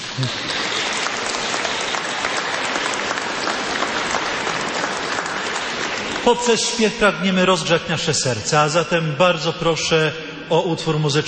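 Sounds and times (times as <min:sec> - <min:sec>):
audience applause: 0:00.0 - 0:06.8
speech: 0:00.2 - 0:00.6, 0:06.3 - 0:11.2.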